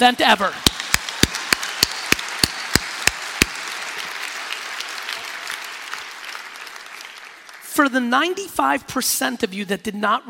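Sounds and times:
speech: 0:00.0 - 0:00.7, 0:07.8 - 0:10.2
audience clapping: 0:00.4 - 0:08.3.

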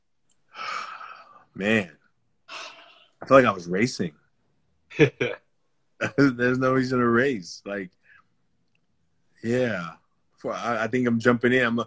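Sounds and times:
deep inhale: 0:00.5 - 0:01.5
speech: 0:01.6 - 0:02.0, 0:03.3 - 0:04.2, 0:05.0 - 0:05.4, 0:06.0 - 0:08.0, 0:09.4 - 0:11.8.

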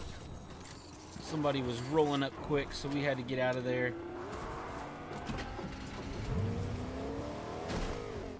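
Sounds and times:
speech: 0:01.3 - 0:04.1
video game car engine droning and revving as it drives off: 0:02.4 - 0:08.3.

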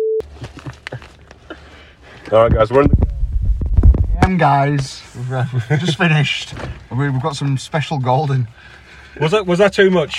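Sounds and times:
microwave oven beep: 0:00.0 - 0:00.2
speech: 0:02.3 - 0:03.0, 0:04.3 - 0:10.1
soft thumps and clatter: 0:02.4 - 0:04.9.

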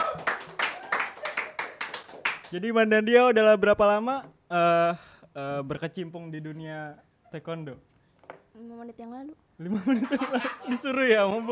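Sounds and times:
small group clapping hands: 0:00.0 - 0:02.6
speech: 0:02.5 - 0:07.9, 0:08.6 - 0:11.4
laughter: 0:09.6 - 0:11.4.

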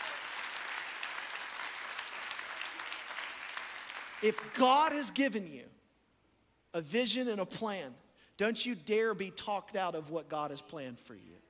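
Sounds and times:
audience clapping hands: 0:00.0 - 0:05.0
speech: 0:04.2 - 0:05.8, 0:06.8 - 0:11.4.

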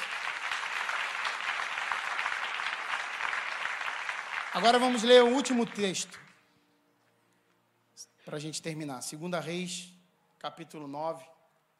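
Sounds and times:
audience applause: 0:00.0 - 0:06.3
speech: 0:04.6 - 0:06.3, 0:08.3 - 0:11.3.

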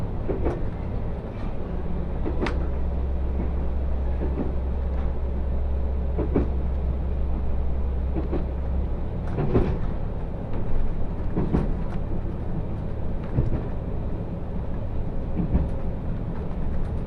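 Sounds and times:
Ai Yoshinogawa trolley train rumble on the Tokushima Line: 0:00.0 - 0:17.0
low hum: 0:00.0 - 0:17.0.

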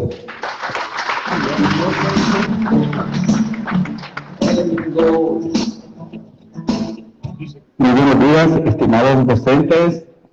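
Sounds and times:
speech: 0:00.0 - 0:00.3, 0:07.9 - 0:10.1
audience applause: 0:00.0 - 0:05.4
murmuring voices: 0:01.3 - 0:07.8.

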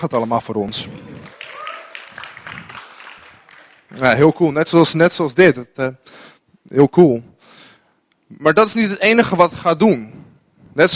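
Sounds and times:
speech: 0:00.0 - 0:01.1, 0:04.0 - 0:07.3, 0:08.3 - 0:10.2, 0:10.8 - 0:10.9
audience applause: 0:00.8 - 0:04.5.

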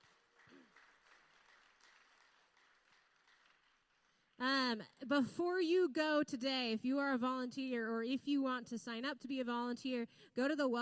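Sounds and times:
church congregation clapping for volunteers: 0:00.0 - 0:04.6
speech: 0:04.4 - 0:10.8.

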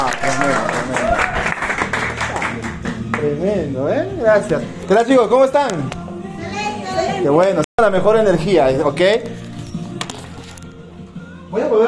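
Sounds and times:
audience applause welcoming a speaker: 0:00.0 - 0:02.8
speech: 0:03.4 - 0:06.0, 0:07.2 - 0:09.4.

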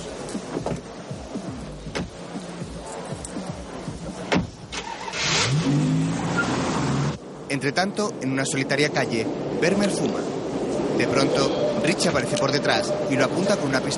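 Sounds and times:
car engine revving as car drives away: 0:00.0 - 0:07.2
steady noisy background: 0:00.0 - 0:13.9
car door thud: 0:00.5 - 0:00.9, 0:01.9 - 0:02.2, 0:04.3 - 0:04.6
speech: 0:07.6 - 0:10.3, 0:11.0 - 0:13.9.

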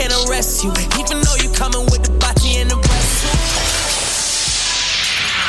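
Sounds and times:
speech: 0:00.2 - 0:02.8
glass dropped and shattering: 0:02.9 - 0:05.4.

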